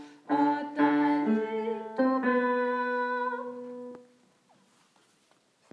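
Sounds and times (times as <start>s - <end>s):
tenor singing a spring song: 0.3s - 4.0s.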